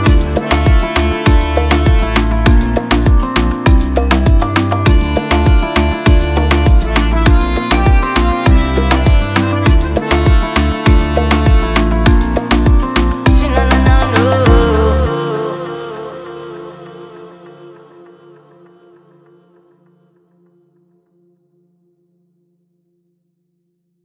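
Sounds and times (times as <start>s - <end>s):
Spanish Latin reggaeton with accordion: 0.0s - 17.2s.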